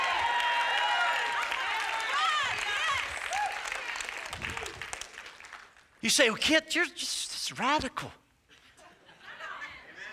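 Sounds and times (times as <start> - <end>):
crowd cheering: 0.0 - 5.1
crowd applauding: 0.0 - 6.0
speech: 6.0 - 8.2
laughter: 8.5 - 10.1.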